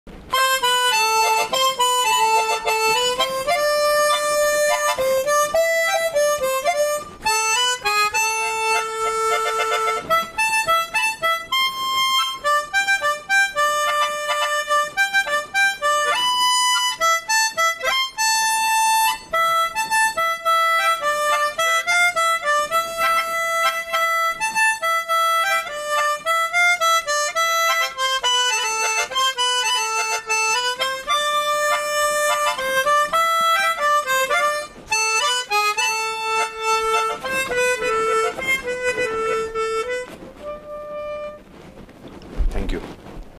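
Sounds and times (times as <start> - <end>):
harmonica melody: 0.1 - 41.8.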